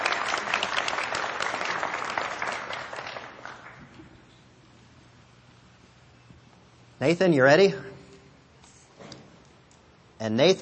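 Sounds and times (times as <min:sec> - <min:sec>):
audience applause: 0:00.0 - 0:03.9
speech: 0:07.0 - 0:07.9, 0:10.2 - 0:10.6.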